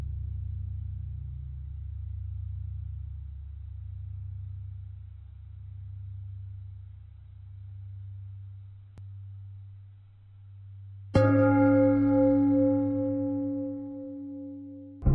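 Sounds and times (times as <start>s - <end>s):
long simple bell ringing: 11.2s - 15.1s.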